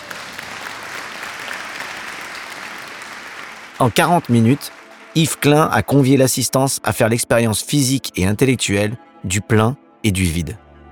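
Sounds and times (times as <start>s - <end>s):
audience applauding orchestra: 0.0s - 6.8s
speech: 3.8s - 10.6s.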